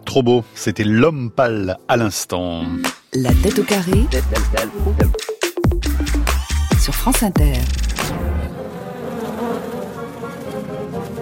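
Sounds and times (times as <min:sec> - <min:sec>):
speech: 0:00.1 - 0:05.2, 0:06.9 - 0:08.3
bees buzzing: 0:03.3 - 0:11.2.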